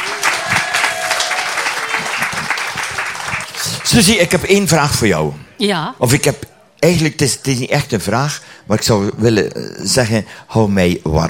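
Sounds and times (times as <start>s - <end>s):
audience applause: 0.0s - 4.4s
speech: 3.9s - 11.2s.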